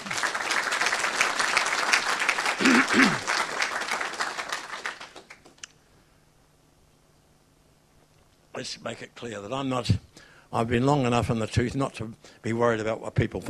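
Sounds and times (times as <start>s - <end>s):
audience clapping: 0.0s - 5.7s
speech: 2.6s - 3.3s, 8.8s - 13.4s.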